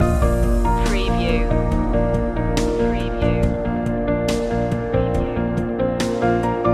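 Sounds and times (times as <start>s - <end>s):
music loop: 0.0s - 6.6s.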